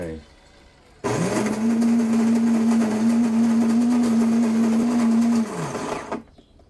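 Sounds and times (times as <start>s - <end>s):
coffee maker grinding coffee beans: 1.0s - 6.3s.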